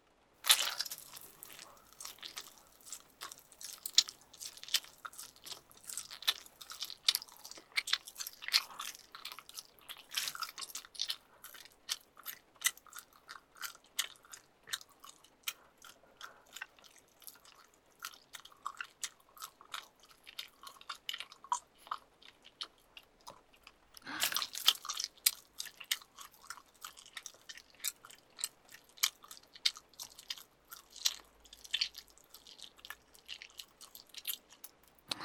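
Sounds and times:
someone chewing slowly with crisp crunching bites: 0.4s - 35.1s.

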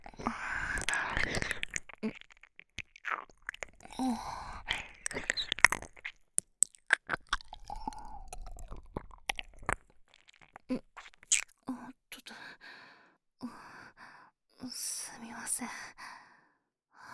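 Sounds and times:
ear licking in the left ear: 0.0s - 11.5s.

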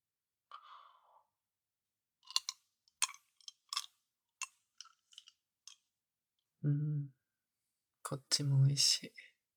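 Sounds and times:
wet licking and smacking mouth sounds: 2.3s - 3.9s
low voice murmuring: 6.6s - 7.1s
speech: 6.6s - 7.2s, 8.1s - 9.3s.

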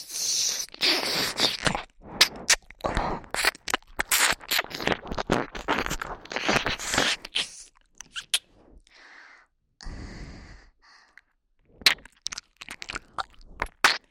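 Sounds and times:
soothing ear licking sounds for sleep: 0.0s - 8.6s, 11.8s - 14.0s.

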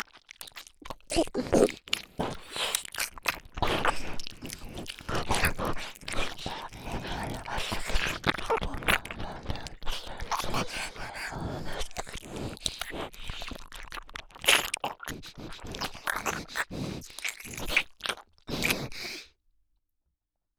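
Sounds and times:
ear licking: 0.0s - 19.2s
nose breathing: 3.6s - 13.6s, 15.0s - 17.8s, 18.5s - 19.3s.

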